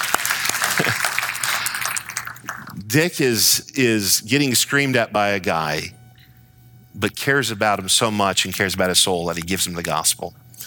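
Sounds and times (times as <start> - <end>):
crowd clapping: 0.0 - 2.8
speech: 0.8 - 1.1, 2.9 - 6.0, 7.0 - 10.6.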